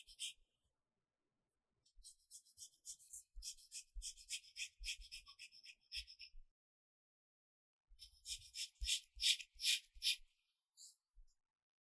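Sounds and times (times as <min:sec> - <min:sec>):
pencil writing on paper: 0:00.0 - 0:00.4, 0:02.0 - 0:06.3, 0:08.0 - 0:10.2.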